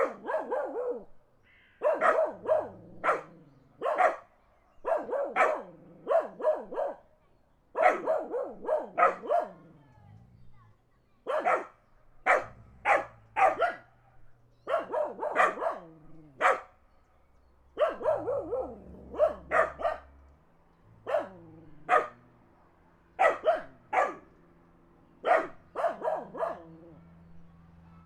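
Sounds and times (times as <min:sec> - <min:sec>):
car passing: 0:00.0 - 0:07.1, 0:07.7 - 0:28.0
dogs barking in the country: 0:00.0 - 0:07.1, 0:07.7 - 0:09.8, 0:11.2 - 0:14.0, 0:14.6 - 0:16.8, 0:17.7 - 0:20.2, 0:21.0 - 0:22.3, 0:23.2 - 0:24.4, 0:25.2 - 0:27.1.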